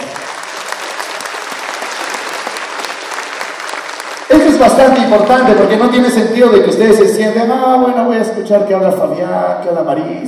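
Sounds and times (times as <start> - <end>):
audience applause: 0.0 - 6.2
speech: 4.4 - 10.2.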